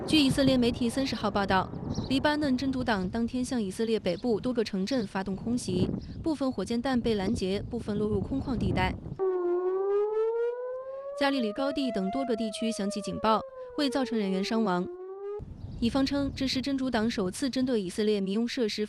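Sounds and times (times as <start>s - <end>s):
people talking: 0.1s - 8.9s, 11.2s - 14.9s, 15.9s - 18.8s
air raid siren wailing: 9.2s - 15.5s.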